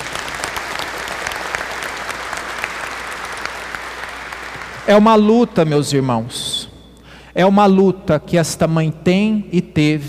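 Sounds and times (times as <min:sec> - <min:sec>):
audience clapping: 0:00.0 - 0:05.3
speech: 0:04.9 - 0:06.6, 0:07.4 - 0:10.0.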